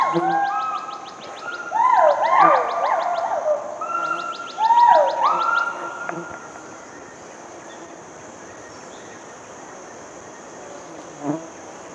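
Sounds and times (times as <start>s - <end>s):
hoolock gibbons hooting: 0.0s - 6.6s.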